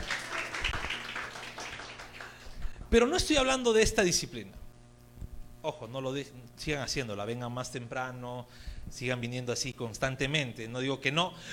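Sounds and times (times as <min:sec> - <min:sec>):
audience applause: 0:00.0 - 0:02.7
speech: 0:02.9 - 0:04.6, 0:05.6 - 0:11.5.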